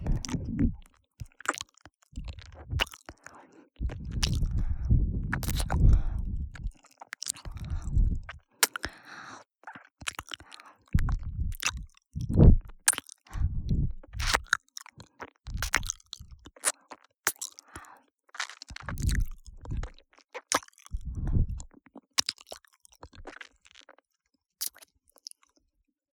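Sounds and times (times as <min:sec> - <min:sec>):
ear licking sounds on the left: 0:00.0 - 0:09.1, 0:10.0 - 0:14.5, 0:15.5 - 0:17.8, 0:18.4 - 0:21.9.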